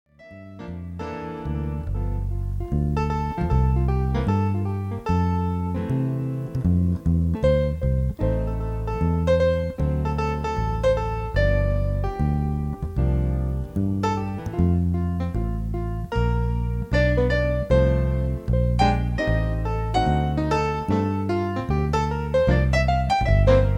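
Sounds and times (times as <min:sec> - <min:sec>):
piano: 0:00.1 - 0:23.7.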